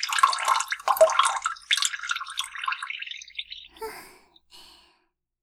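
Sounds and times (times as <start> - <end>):
person urinating: 0.0 - 4.0.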